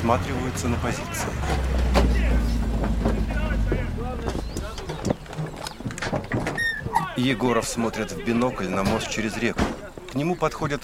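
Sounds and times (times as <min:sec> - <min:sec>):
two vehicles approaching a river bend engines rumbling: 0:00.0 - 0:10.8
speech: 0:00.1 - 0:01.9, 0:07.2 - 0:10.8
wind noise: 0:01.4 - 0:07.2.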